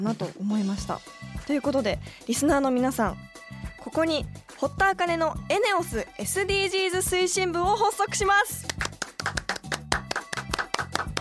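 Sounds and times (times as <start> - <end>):
speech: 0.0 - 8.9
rhythmic hand clapping: 8.5 - 11.1.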